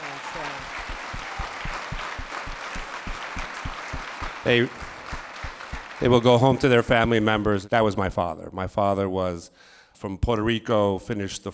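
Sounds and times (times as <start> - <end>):
round of applause: 0.0 - 7.1
speech: 0.4 - 0.7, 4.4 - 4.8, 6.0 - 11.5.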